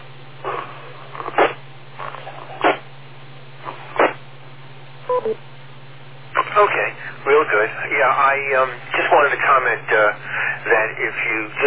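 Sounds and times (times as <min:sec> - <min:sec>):
steady low hum: 0:00.0 - 0:11.6
bursts of radio static: 0:00.4 - 0:01.6, 0:02.6 - 0:02.9, 0:03.6 - 0:04.2, 0:06.4 - 0:11.6
radio repeater beep tone: 0:05.1 - 0:05.4
speech: 0:08.3 - 0:08.9, 0:10.9 - 0:11.6.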